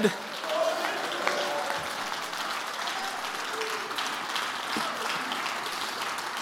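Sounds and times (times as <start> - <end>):
audience applause: 0.0 - 6.4
scattered cheering voices: 0.0 - 6.4.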